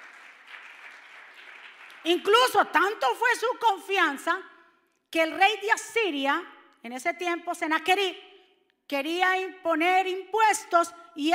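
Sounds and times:
loud audience applause: 0.0s - 2.3s
speech: 2.0s - 4.5s, 5.1s - 8.3s, 8.9s - 11.3s.

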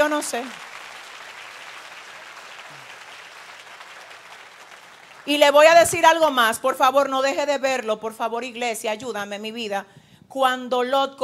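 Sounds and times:
audience applauding: 0.0s - 5.6s
speech: 0.1s - 0.7s, 5.3s - 11.2s.

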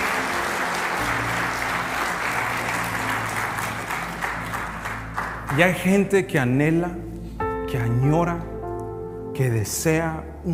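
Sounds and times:
audience applause: 0.0s - 5.9s
speech: 5.6s - 7.1s, 7.7s - 8.5s, 9.4s - 10.5s.

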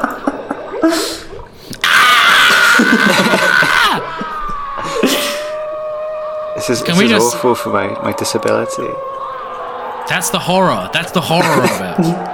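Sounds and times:
bubbling cauldron: 0.0s - 4.7s
speech: 0.8s - 1.2s, 6.7s - 9.2s, 10.1s - 12.3s
screams and shrieks: 1.8s - 12.3s
sustained high wail: 1.8s - 12.3s
laughter: 2.4s - 5.6s, 10.1s - 12.3s.

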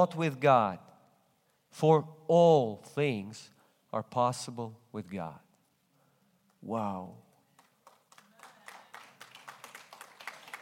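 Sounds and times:
speech: 0.0s - 0.9s, 1.7s - 5.4s, 6.6s - 7.2s
audience clapping: 7.3s - 10.5s.

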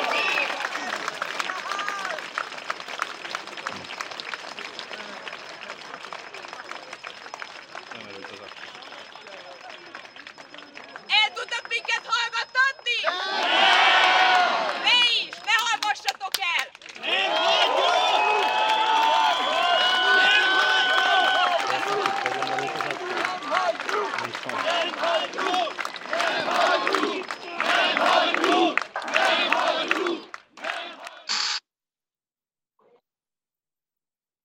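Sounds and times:
protest crowd cheering and shouting: 0.0s - 0.9s, 11.1s - 15.4s, 17.0s - 30.8s
clapping: 0.0s - 31.2s.

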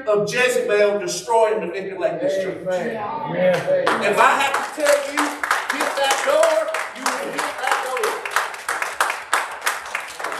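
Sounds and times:
speech: 0.0s - 6.6s
audience hand claps: 3.5s - 10.3s.

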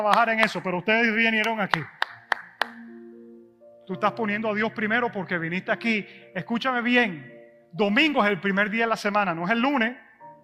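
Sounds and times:
speech: 0.0s - 2.0s, 3.9s - 10.0s
applause: 1.4s - 2.8s.

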